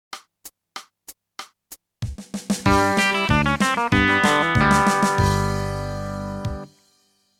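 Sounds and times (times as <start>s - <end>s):
country music: 2.6s - 6.8s.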